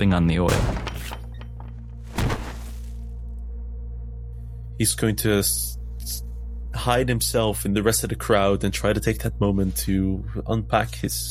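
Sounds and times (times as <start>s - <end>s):
speech: 0.0s - 0.9s, 4.8s - 11.3s
body slamming against a wooden door: 0.5s - 1.4s, 2.1s - 3.0s.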